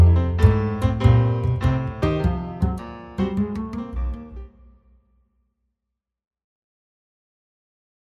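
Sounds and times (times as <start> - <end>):
jazz bass: 0.0 - 4.6
jazz piano: 0.0 - 4.7.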